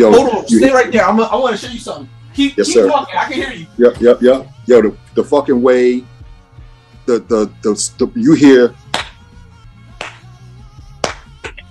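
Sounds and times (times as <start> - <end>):
speech: 0.0 - 6.1, 7.1 - 8.8
rhythmic hand claps from a song recording: 8.7 - 11.6.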